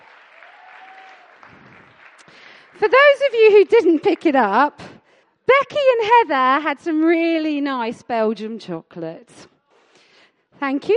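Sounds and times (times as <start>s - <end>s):
audience clapping: 0.0s - 4.4s
speech: 2.8s - 4.8s, 5.5s - 9.5s, 10.6s - 10.9s.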